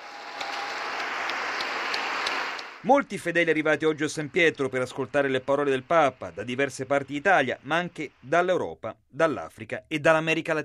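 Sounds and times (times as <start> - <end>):
crowd applause: 0.0 - 7.2
speech: 2.8 - 10.6.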